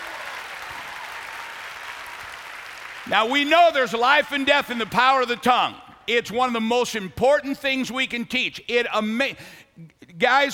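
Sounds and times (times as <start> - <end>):
congregation clapping in a church service: 0.0 - 5.6
speech: 3.0 - 10.5.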